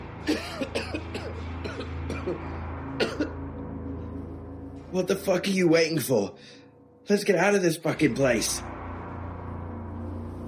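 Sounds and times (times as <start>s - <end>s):
man coughing: 0.2s - 3.4s
speech: 4.9s - 8.7s.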